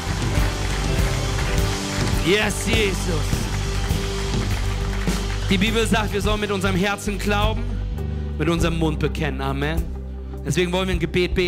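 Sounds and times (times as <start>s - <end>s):
audience applause: 0.0s - 6.8s
speech: 2.3s - 3.4s, 5.5s - 7.7s, 8.4s - 11.4s.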